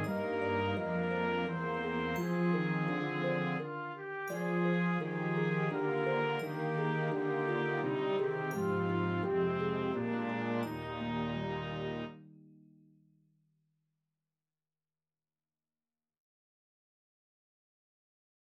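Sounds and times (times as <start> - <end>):
trumpet melody: 0.0 - 12.2.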